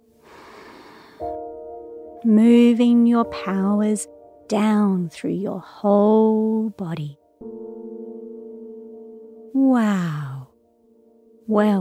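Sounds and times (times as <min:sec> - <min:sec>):
deep breath in and exhale: 0:00.2 - 0:01.4
sustained musical tones: 0:01.3 - 0:11.7
speech: 0:02.2 - 0:07.2, 0:09.6 - 0:10.3, 0:11.5 - 0:11.7.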